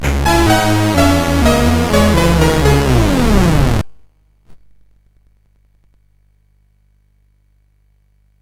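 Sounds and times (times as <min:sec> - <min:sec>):
SID CSG8580R5 chip music: 0:00.0 - 0:03.9.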